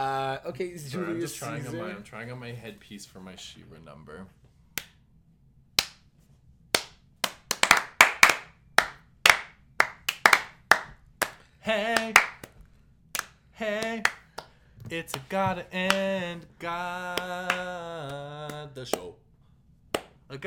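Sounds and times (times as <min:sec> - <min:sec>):
speech: 0:00.4 - 0:04.4, 0:11.6 - 0:12.4, 0:13.6 - 0:14.2, 0:14.9 - 0:19.2
hand claps: 0:05.8 - 0:06.1, 0:06.8 - 0:12.6, 0:13.2 - 0:16.2, 0:17.1 - 0:19.1, 0:19.9 - 0:20.2.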